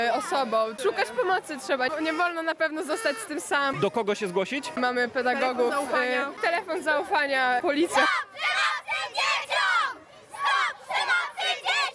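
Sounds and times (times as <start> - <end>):
speech: 0.0 - 8.5
schoolchildren shouting during a march: 7.9 - 11.9.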